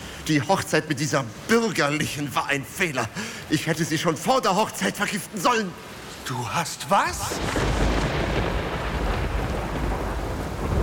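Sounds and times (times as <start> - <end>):
speech: 0.3 - 7.8
storm with thunder: 7.1 - 10.8.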